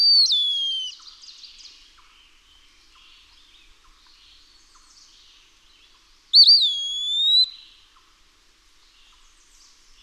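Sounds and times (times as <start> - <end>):
Eastern wood-pewee whistled pee-a-wee call: 0.0 - 1.0, 6.4 - 7.6.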